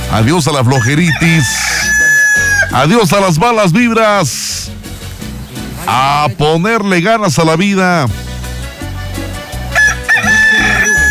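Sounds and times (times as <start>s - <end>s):
speech: 0.1s - 1.9s, 2.7s - 4.8s, 5.9s - 8.2s
rooster crowing: 0.7s - 2.8s, 9.7s - 11.0s.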